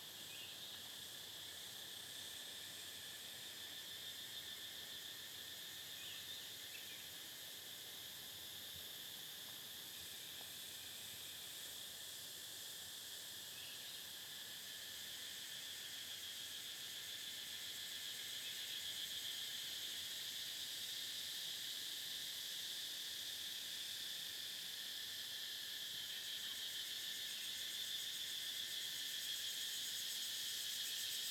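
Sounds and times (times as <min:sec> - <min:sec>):
cicadas in a national park in Vietnam: 0:00.0 - 0:31.2.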